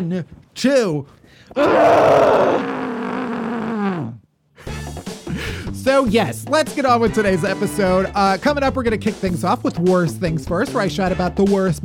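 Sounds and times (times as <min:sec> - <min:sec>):
speech: 0:00.0 - 0:02.9, 0:06.0 - 0:11.8
muffled scream into a pillow: 0:01.6 - 0:04.2.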